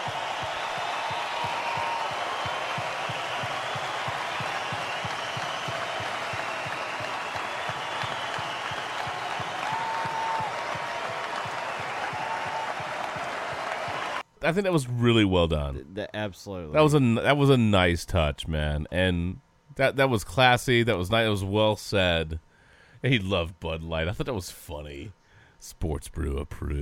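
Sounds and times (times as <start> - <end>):
audience applause: 0.0 - 14.2
speech: 14.4 - 26.8.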